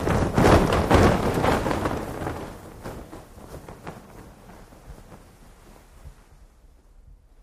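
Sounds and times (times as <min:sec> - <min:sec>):
flag or parachute fabric flapping and shaking: 0:00.0 - 0:07.4.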